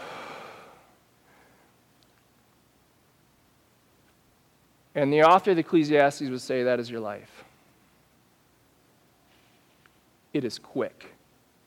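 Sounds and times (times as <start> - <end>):
deep breath out in a guided breathing exercise: 0.0 - 1.8
speech: 5.0 - 7.5, 10.3 - 11.2.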